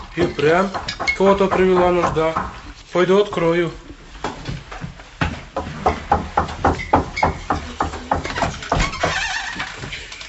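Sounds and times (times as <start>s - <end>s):
knocking on a door: 0.2s - 2.6s, 5.2s - 9.2s
speech: 0.2s - 3.8s.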